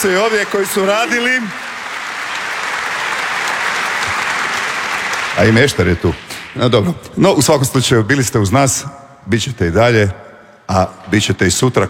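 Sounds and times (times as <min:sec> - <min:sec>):
speech: 0:00.0 - 0:01.6, 0:05.4 - 0:11.8
studio audience applause for the Dobro jutro Hrvatska team: 0:00.0 - 0:06.6.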